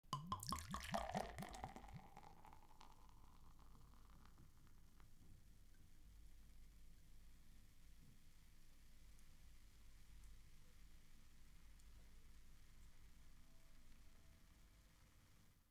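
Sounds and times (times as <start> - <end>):
beer spilling: 0.2 - 3.9.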